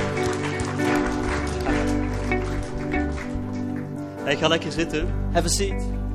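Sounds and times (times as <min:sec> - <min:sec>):
audience applause: 0:00.0 - 0:04.8
speech: 0:04.3 - 0:06.0.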